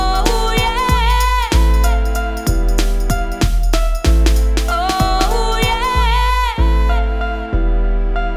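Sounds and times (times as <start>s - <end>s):
instruments: 0.0s - 6.6s
vocals with sidechain compression: 0.0s - 8.3s.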